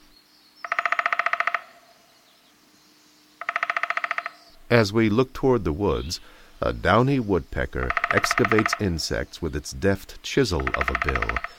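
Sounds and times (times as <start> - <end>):
quiet hiss: 0.0 - 0.6, 1.7 - 3.4, 4.3 - 11.5
Wilson's snipe calling: 0.0 - 2.4, 3.4 - 11.5
speech: 4.7 - 11.5.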